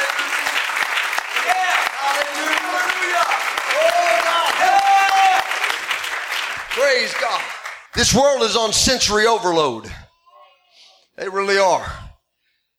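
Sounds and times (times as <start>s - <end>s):
audience clapping: 0.0s - 9.3s
speech: 7.0s - 10.0s, 11.2s - 12.0s.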